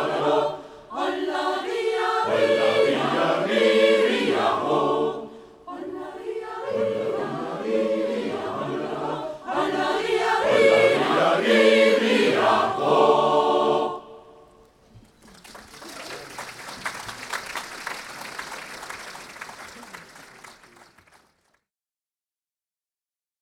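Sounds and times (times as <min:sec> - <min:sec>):
community choir singing: 0:00.0 - 0:14.6.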